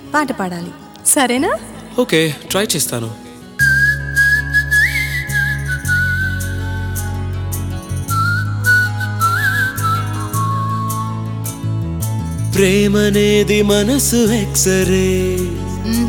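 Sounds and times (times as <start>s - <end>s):
steady low musical backing: 0.0s - 16.0s
speech: 0.1s - 3.2s, 12.6s - 16.0s
person whistling a song tune: 3.6s - 7.2s, 8.0s - 11.6s.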